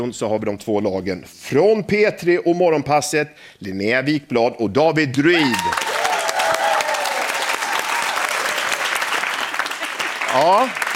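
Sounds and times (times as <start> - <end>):
speech: 0.0 - 5.9, 10.3 - 10.8
one person applauding: 5.4 - 10.9.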